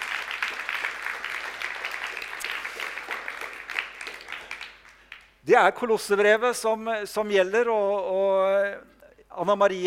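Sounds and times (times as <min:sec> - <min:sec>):
audience applause: 0:00.0 - 0:05.3
speech: 0:05.5 - 0:09.8.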